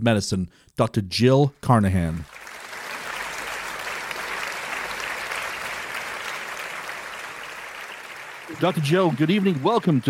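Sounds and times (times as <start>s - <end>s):
speech: 0.0s - 2.4s, 8.6s - 10.0s
audience applause welcoming a guest onto a talk show: 2.3s - 10.0s.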